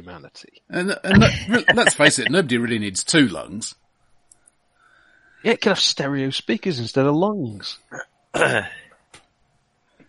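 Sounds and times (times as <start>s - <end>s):
speech: 0.0s - 3.8s, 5.4s - 8.8s
laughter: 0.8s - 3.0s
people coughing: 0.9s - 2.4s, 7.9s - 8.8s.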